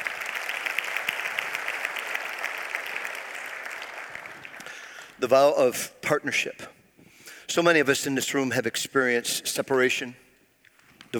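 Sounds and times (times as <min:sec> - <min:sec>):
audience applause: 0:00.0 - 0:05.2
speech: 0:05.2 - 0:06.7, 0:07.5 - 0:10.2.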